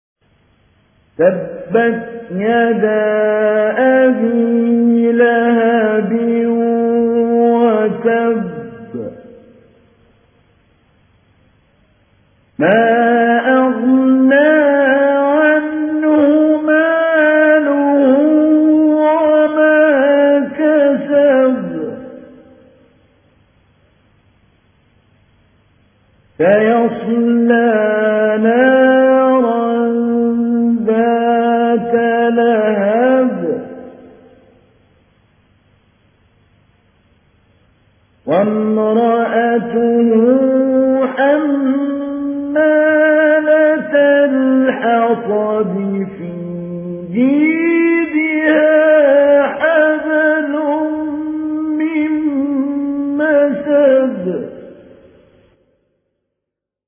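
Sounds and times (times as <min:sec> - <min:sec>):
mujawwad Quran recitation: 0:01.2 - 0:09.3, 0:12.6 - 0:22.5, 0:26.4 - 0:34.0, 0:38.3 - 0:54.8.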